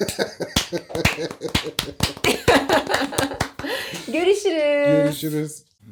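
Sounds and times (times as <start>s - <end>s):
hand clapping: 0.0s - 4.2s
laughter: 0.0s - 4.3s
speech: 5.2s - 5.6s.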